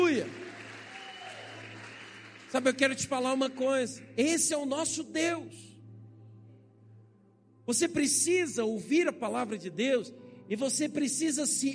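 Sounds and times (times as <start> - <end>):
audience applauding: 0.0 - 3.6
speech: 2.5 - 5.7, 7.7 - 11.7.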